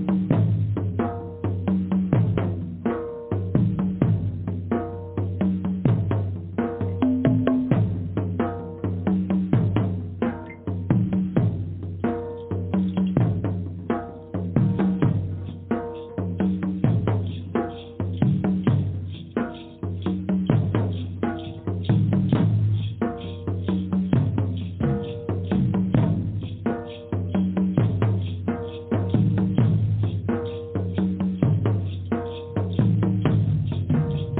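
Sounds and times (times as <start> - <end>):
powerful drumming: 0.0 - 34.3.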